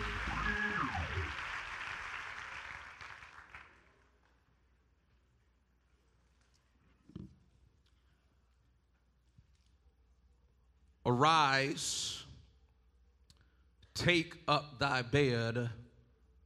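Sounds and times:
audience clapping hands: 0:00.0 - 0:04.6
speech: 0:11.1 - 0:12.2, 0:14.0 - 0:15.8.

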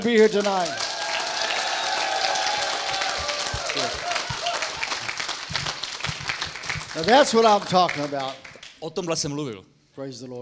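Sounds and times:
speech: 0:00.0 - 0:00.8, 0:07.0 - 0:10.4
audience clapping at a church meeting: 0:00.0 - 0:08.8
voices shouting: 0:00.7 - 0:04.9.

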